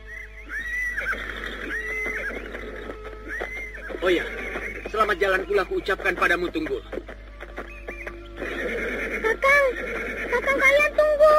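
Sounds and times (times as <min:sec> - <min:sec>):
horse whinnying while led on foot to a palace gate: 0:00.5 - 0:05.4, 0:07.8 - 0:11.3
horse hooves clopping: 0:00.5 - 0:11.3
speech: 0:04.0 - 0:04.4, 0:05.0 - 0:07.0, 0:09.7 - 0:11.0.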